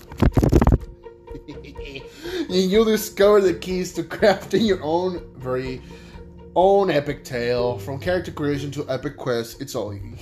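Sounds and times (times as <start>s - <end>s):
book pages flipping: 0.0s - 0.9s
laughter: 1.3s - 2.1s
speech: 1.9s - 10.2s.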